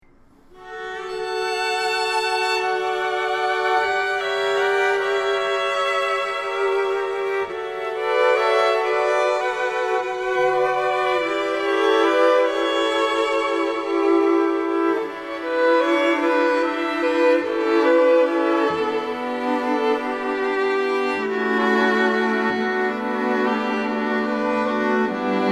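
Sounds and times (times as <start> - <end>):
string quartet: 0.4 - 25.5.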